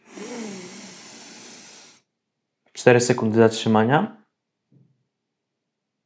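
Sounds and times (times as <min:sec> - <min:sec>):
slow inhalation: 0:00.0 - 0:02.1
speech: 0:02.8 - 0:04.2.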